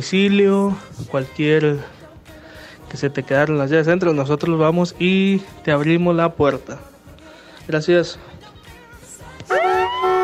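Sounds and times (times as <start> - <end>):
speech: 0.0 - 2.0, 2.9 - 6.9, 7.7 - 8.3
brassy horn blast sound effect: 9.5 - 10.2.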